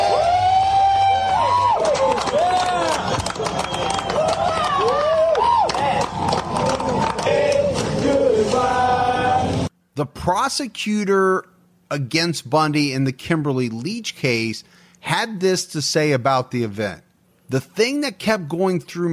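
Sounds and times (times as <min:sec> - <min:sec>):
crowd cheering: 0:00.0 - 0:09.7
speech: 0:10.0 - 0:19.1.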